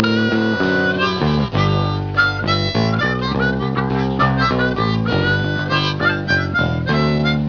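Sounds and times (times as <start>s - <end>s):
blues music: 0.0s - 7.4s.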